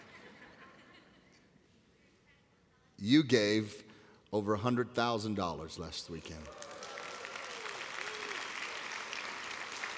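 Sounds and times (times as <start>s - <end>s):
laughter: 0.0s - 1.4s
speech: 3.0s - 6.7s
audience applause: 6.4s - 9.9s.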